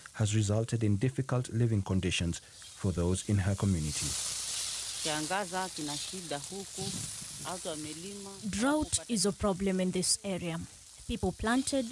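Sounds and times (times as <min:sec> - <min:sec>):
scarce food supplies sizzling in a pan over an open fire: 0:00.0 - 0:11.9
speech: 0:00.2 - 0:04.4, 0:05.0 - 0:11.9.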